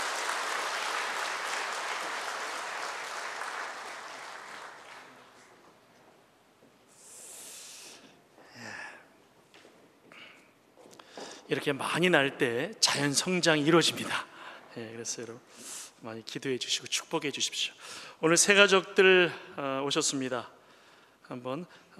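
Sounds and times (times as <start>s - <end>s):
audience applause: 0.0s - 5.6s
speech: 11.5s - 20.6s, 21.3s - 21.9s.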